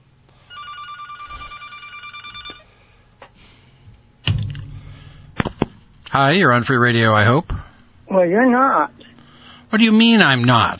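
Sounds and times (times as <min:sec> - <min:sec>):
telephone ringing with an incoming call to a radio show: 0:00.4 - 0:02.7
speech: 0:06.2 - 0:07.5, 0:08.1 - 0:09.0, 0:09.7 - 0:10.7.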